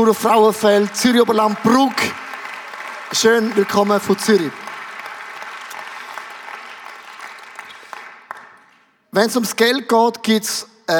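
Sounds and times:
speech: 0:00.0 - 0:02.2, 0:03.1 - 0:04.6, 0:09.2 - 0:10.9
audience applause: 0:00.0 - 0:08.8.

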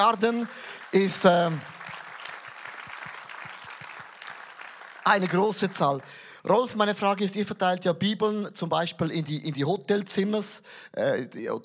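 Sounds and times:
speech: 0:00.0 - 0:01.8, 0:05.0 - 0:11.6
audience applause: 0:00.0 - 0:06.3.

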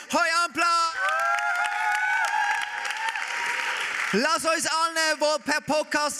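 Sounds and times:
audience applause: 0:00.8 - 0:04.6
speech: 0:04.1 - 0:06.1.

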